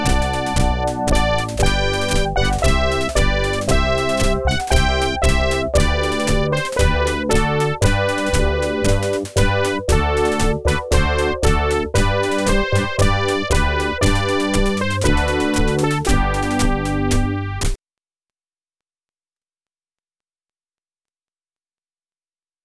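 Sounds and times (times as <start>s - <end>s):
victory march: 0.0s - 17.8s.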